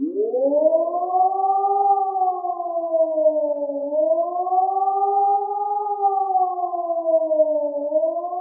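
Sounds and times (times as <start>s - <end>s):
civil defense warning siren for a natural disaster emergency: 0.0s - 8.3s.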